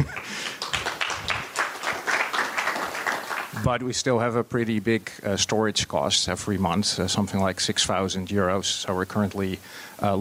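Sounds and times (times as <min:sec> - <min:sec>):
audience applause: 0:00.0 - 0:03.8
speech: 0:03.7 - 0:10.1.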